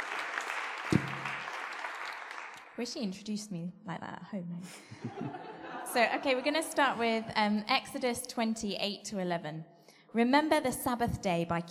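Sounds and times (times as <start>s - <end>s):
audience applauding: 0.0s - 2.8s
low thump: 0.9s - 1.3s
speech: 2.8s - 11.6s
laughter: 4.8s - 6.6s.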